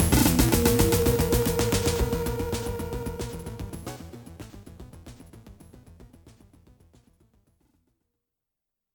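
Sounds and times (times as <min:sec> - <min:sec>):
level 3 warning sound: 0:00.1 - 0:04.1.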